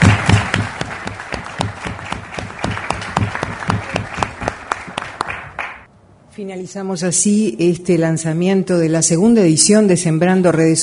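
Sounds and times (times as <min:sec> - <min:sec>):
audience applause: 0:00.0 - 0:05.9
speech: 0:06.4 - 0:10.8.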